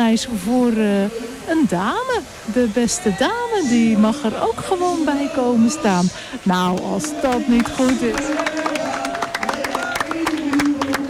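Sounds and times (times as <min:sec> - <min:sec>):
speech: 0:00.0 - 0:08.5
loud applause: 0:06.8 - 0:11.0.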